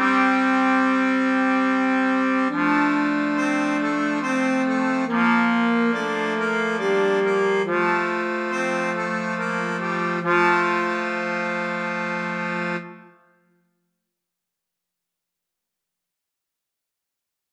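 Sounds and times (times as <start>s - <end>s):
slow musette: 0.0s - 13.6s.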